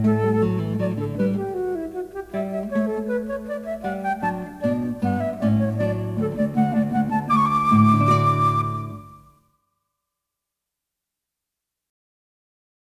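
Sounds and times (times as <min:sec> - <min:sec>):
classical guitar: 0:00.0 - 0:09.3
flute: 0:00.0 - 0:09.4.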